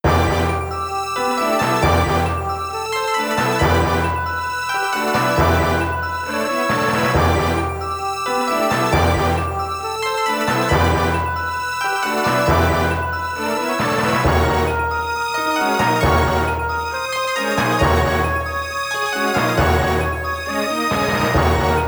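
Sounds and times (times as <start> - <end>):
forest and cave background music: 0.0 - 21.8.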